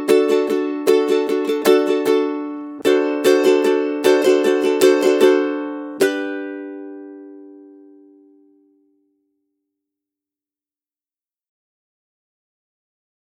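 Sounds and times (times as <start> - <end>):
ukulele rhythm study: 0.0 - 9.3.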